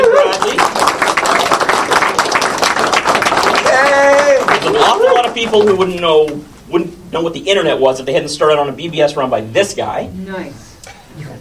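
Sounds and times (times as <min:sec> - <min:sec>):
large audience applause: 0:00.0 - 0:06.0
speech: 0:05.4 - 0:11.4.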